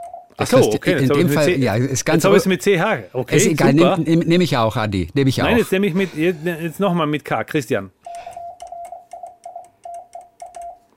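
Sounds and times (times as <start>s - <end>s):
Morse code being keyed: 0.0s - 0.4s, 8.0s - 10.9s
speech: 0.4s - 8.3s.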